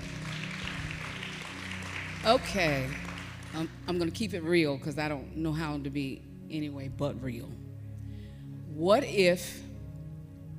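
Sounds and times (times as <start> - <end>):
audience clapping: 0.0 - 4.0
speech: 2.2 - 7.6, 8.8 - 9.6.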